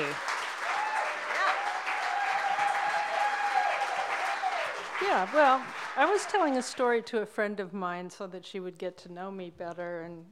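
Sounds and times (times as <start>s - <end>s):
audience applause: 0.0s - 6.9s
speech: 5.0s - 10.3s.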